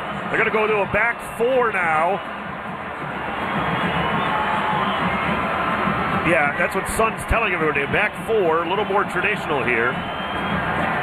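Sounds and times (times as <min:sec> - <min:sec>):
stadium crowd roar: 0:00.0 - 0:11.0
speech: 0:00.3 - 0:02.4, 0:03.0 - 0:03.8, 0:06.3 - 0:10.5.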